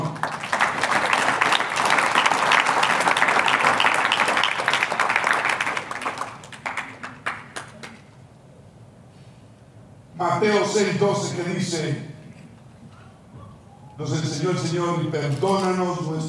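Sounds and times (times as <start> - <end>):
audience applause: 0.0 - 8.0
speech: 10.4 - 12.1, 14.0 - 16.2.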